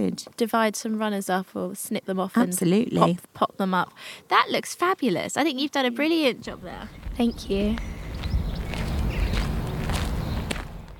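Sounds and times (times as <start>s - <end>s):
speech: 0.0s - 8.0s
footsteps walking down a garden: 6.4s - 10.9s
low rumble: 6.4s - 10.9s.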